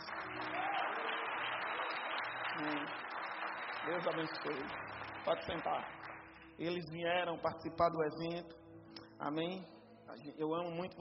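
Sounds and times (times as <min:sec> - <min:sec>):
audience applause: 0:00.0 - 0:06.4
speech: 0:02.6 - 0:03.0, 0:03.8 - 0:06.0, 0:06.6 - 0:08.6, 0:09.2 - 0:10.9.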